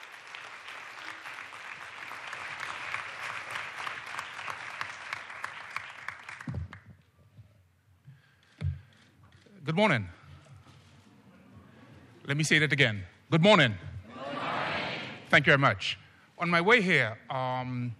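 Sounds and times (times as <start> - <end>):
audience applause: 0.0 - 6.8
speech: 9.7 - 10.2, 12.3 - 13.9, 15.3 - 17.9.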